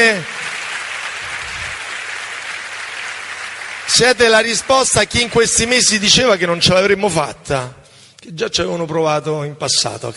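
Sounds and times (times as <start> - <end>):
speech: 0.0 - 0.3, 3.9 - 10.1
crowd applause at a political rally for a national civic movement: 0.0 - 6.4.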